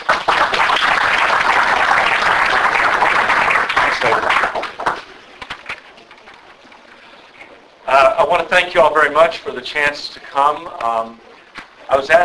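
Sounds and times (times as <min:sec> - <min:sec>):
audience applause welcoming a speaker at a philosophers' forum in Dallas: 0:00.0 - 0:05.6
speech: 0:08.2 - 0:11.3, 0:11.9 - 0:12.2.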